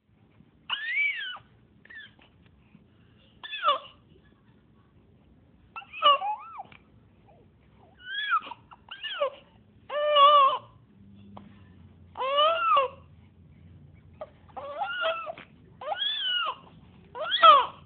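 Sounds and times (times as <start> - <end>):
baby sounds: 3.4 - 4.0, 5.8 - 10.8, 12.2 - 13.1, 14.2 - 17.8.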